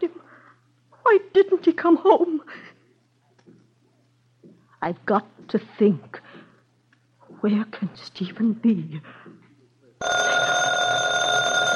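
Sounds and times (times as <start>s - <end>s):
speech: 1.1s - 2.7s, 4.8s - 6.2s, 7.4s - 9.2s
telephone ringing: 10.0s - 11.7s.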